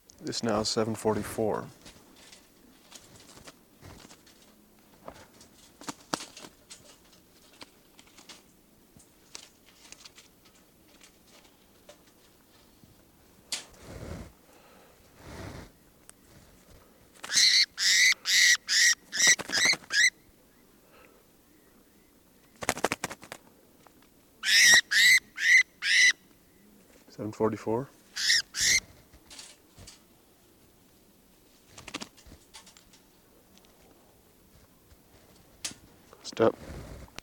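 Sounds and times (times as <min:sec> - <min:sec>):
speech: 0:00.2 - 0:02.0, 0:27.5 - 0:28.0
birds calling: 0:17.2 - 0:22.9, 0:24.3 - 0:26.9, 0:28.0 - 0:28.9.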